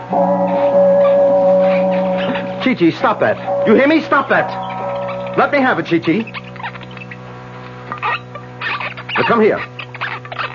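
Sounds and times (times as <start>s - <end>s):
Chinese gong ringing: 0.0s - 6.8s
speech: 2.7s - 4.6s, 5.4s - 6.4s, 9.3s - 9.7s.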